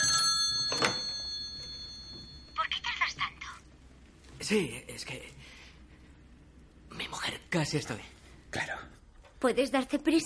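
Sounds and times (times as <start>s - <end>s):
telephone ringing: 0.0s - 3.4s
speech: 4.5s - 5.4s, 7.5s - 8.2s, 9.4s - 10.2s.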